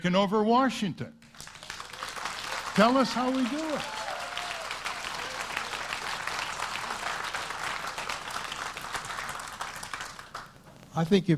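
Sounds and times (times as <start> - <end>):
speech: 0.0 - 1.5, 2.8 - 4.0, 11.0 - 11.3
people clapping: 1.2 - 10.9.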